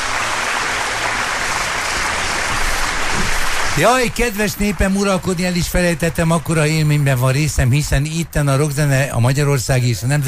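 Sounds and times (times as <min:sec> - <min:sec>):
applause: 0:00.0 - 0:08.0
speech: 0:03.8 - 0:10.2.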